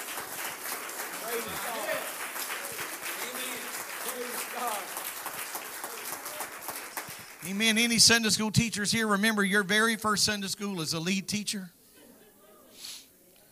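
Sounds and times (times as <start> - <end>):
audience clapping: 0.0 - 8.4
speech: 7.5 - 11.8.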